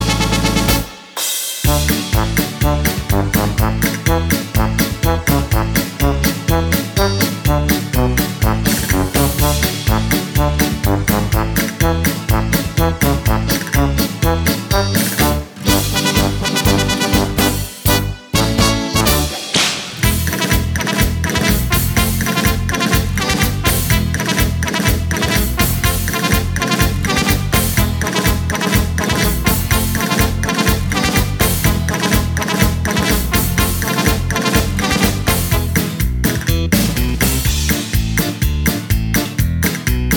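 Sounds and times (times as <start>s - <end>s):
paso doble music: 0.0s - 40.1s.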